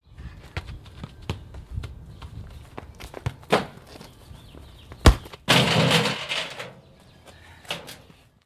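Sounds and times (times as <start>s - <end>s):
street soccer match: 0.2s - 5.5s.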